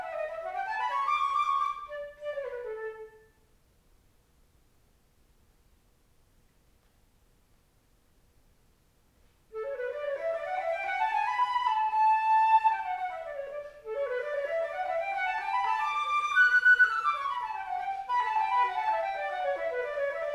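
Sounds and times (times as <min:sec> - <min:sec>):
flute: 0:00.0 - 0:03.4, 0:09.6 - 0:20.3.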